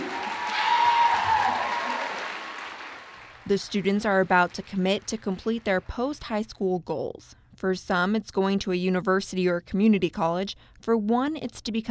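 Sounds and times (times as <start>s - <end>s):
auditorium audience applauding: 0.0s - 5.7s
speech: 3.5s - 11.8s.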